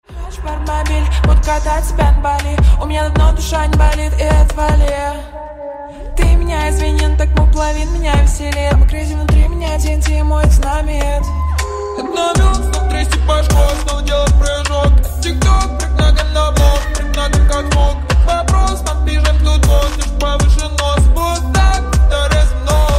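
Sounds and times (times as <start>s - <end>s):
slowed reverb music: 0.0s - 22.9s.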